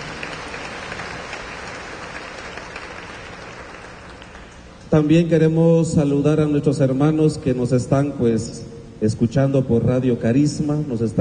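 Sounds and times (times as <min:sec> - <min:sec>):
audience applauding: 0:00.0 - 0:04.7
speech: 0:04.9 - 0:11.2.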